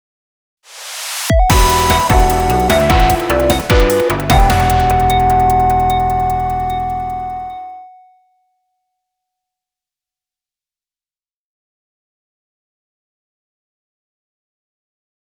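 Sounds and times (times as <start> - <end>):
hacking mission fail jingle: 1.5 - 7.8.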